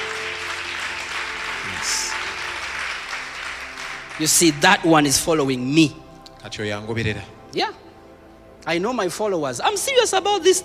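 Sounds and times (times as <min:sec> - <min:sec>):
audience clapping hands: 0:00.0 - 0:05.8
speech: 0:01.8 - 0:02.2, 0:04.2 - 0:07.8, 0:08.6 - 0:10.6.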